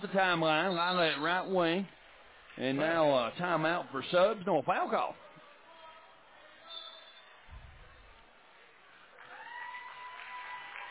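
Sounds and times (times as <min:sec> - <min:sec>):
speech: 0:00.0 - 0:02.0, 0:02.6 - 0:05.2
crowd applause for player leaving game: 0:09.0 - 0:10.8.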